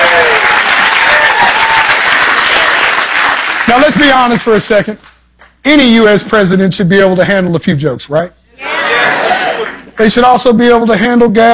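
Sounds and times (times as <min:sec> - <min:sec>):
audience applause: 0:00.0 - 0:03.9, 0:09.1 - 0:09.9
speech: 0:03.7 - 0:08.4, 0:10.0 - 0:11.5.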